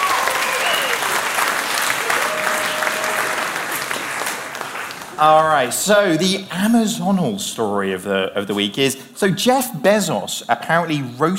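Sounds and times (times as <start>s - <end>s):
audience applause: 0.0s - 5.8s
speech: 5.2s - 11.3s.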